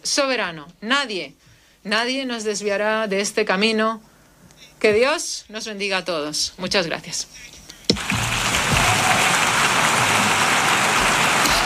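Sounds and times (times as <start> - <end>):
speech: 0.1 - 4.1, 4.8 - 7.6
audience applause: 7.9 - 11.6.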